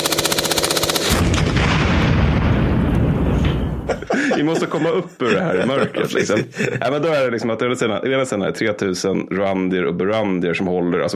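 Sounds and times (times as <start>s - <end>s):
rapid machine gun fire: 0.0s - 3.9s
laughter: 3.8s - 7.5s
speech: 4.4s - 11.1s.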